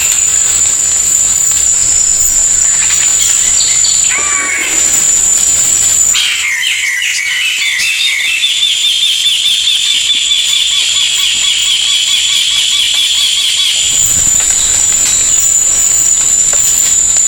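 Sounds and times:
high steady whine: 0.0s - 6.6s, 13.7s - 17.2s
bird chirping: 0.0s - 17.2s.

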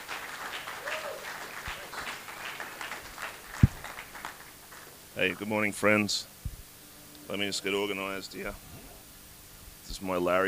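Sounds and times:
audience cheering and applauding: 0.0s - 5.0s
speech: 5.2s - 6.3s, 7.3s - 8.7s, 9.9s - 10.4s.

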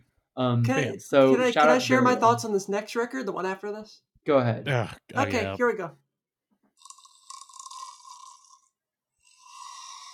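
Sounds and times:
speech: 0.4s - 6.0s
snoring: 6.8s - 10.1s.

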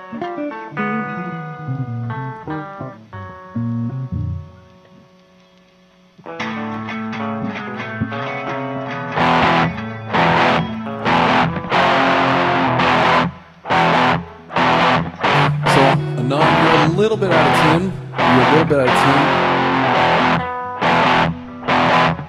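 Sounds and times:
distorted electric guitar on the neck pickup playing lead phrase and chords: 0.0s - 22.2s.

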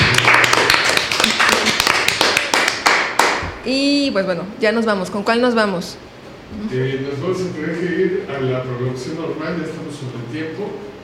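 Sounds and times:
applause: 0.0s - 3.5s
speech: 3.7s - 10.9s.

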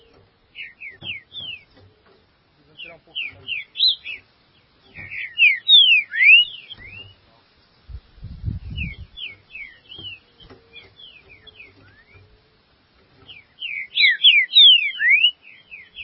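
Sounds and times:
green-winged saltator singing: 0.0s - 1.7s, 2.8s - 4.2s, 5.0s - 7.2s, 8.7s - 12.2s, 13.6s - 16.0s.

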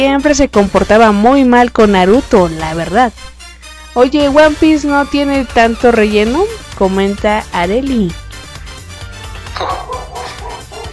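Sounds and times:
speech: 0.0s - 3.3s, 4.0s - 8.2s, 9.6s - 9.9s
dog barking in short sharp yaps: 9.6s - 10.9s.

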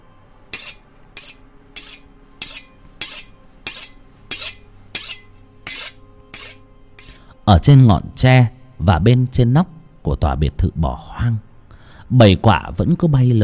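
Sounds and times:
knife being sharpened: 0.5s - 7.3s
speech: 7.5s - 11.5s, 12.1s - 13.4s.

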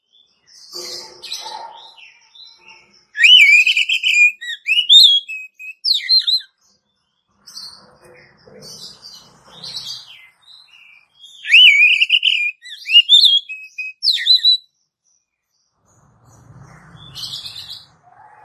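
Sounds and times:
Oriental magpie-robin song: 0.8s - 6.5s, 9.8s - 14.7s.

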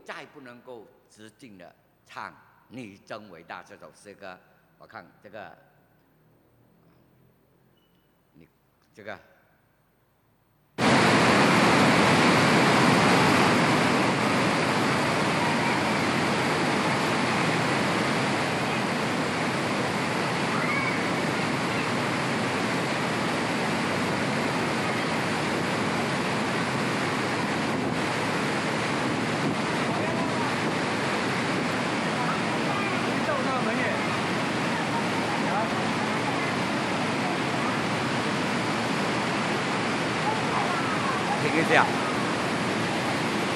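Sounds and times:
speech: 0.2s - 5.7s, 8.4s - 9.3s
Silver Chain waterfall roaring from a played video: 10.8s - 43.5s.

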